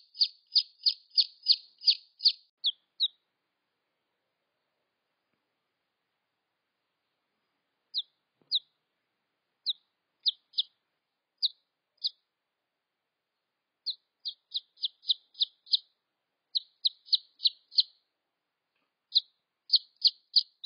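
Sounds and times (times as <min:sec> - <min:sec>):
red junglefowl chick peeps: 0:00.0 - 0:03.2, 0:07.9 - 0:08.7, 0:09.6 - 0:10.8, 0:11.4 - 0:12.2, 0:13.8 - 0:15.9, 0:16.5 - 0:18.0, 0:19.1 - 0:20.6.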